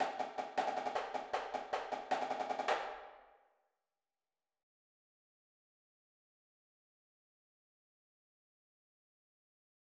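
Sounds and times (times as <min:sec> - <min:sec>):
drumline snare drums: 0:00.0 - 0:03.0.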